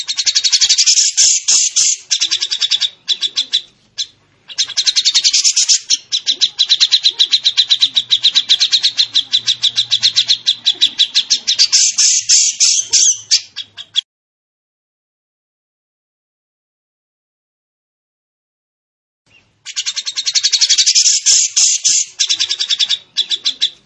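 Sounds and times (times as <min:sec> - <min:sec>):
training bird song with rapid high rattling notes and buzzy trills: 0:00.0 - 0:14.0, 0:19.3 - 0:23.8.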